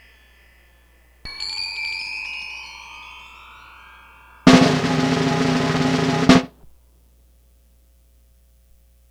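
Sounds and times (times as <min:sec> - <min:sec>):
snare drum buzz roll: 0:04.5 - 0:06.5.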